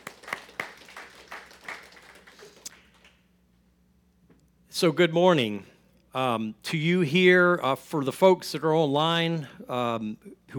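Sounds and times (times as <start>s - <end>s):
scattered hand claps: 0.0s - 3.2s
speech: 4.8s - 10.5s.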